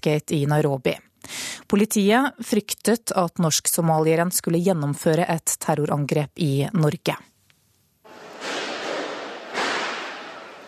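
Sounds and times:
speech: 0.0s - 1.1s, 1.7s - 7.3s
loud gunshots: 8.4s - 10.6s.

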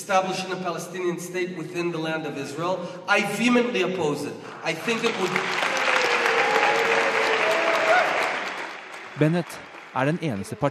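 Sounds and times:
speech: 0.1s - 5.7s, 9.2s - 10.6s
crowd applause: 4.6s - 10.6s.

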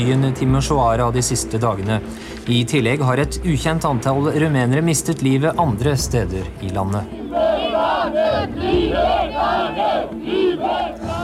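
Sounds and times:
speech: 0.0s - 7.2s, 8.0s - 11.2s
crowd shouting cries of freedom in Romania: 7.1s - 11.2s.

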